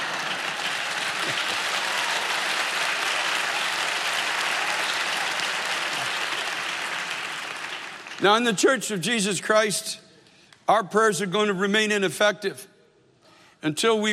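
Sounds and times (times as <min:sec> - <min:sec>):
weak audience applause: 0:00.0 - 0:08.2
speech: 0:08.2 - 0:10.0, 0:10.7 - 0:12.7, 0:13.6 - 0:14.1.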